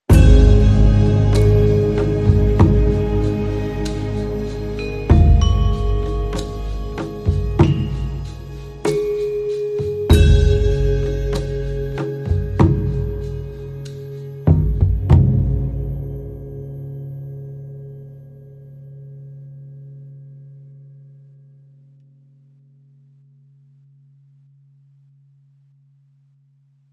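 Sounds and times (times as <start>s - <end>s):
music sting without lead: 0.1s - 17.3s.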